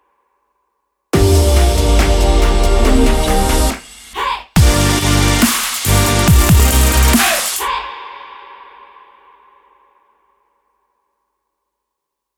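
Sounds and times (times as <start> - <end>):
energetic future bass logo jingle: 1.2 - 4.0, 4.6 - 7.4.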